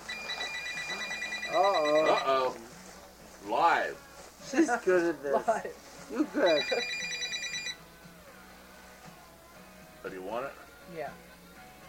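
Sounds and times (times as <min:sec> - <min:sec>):
cell phone ringing with warbling electronic tone: 0:00.0 - 0:02.6, 0:06.4 - 0:07.8
speech: 0:04.5 - 0:07.0, 0:10.0 - 0:11.3.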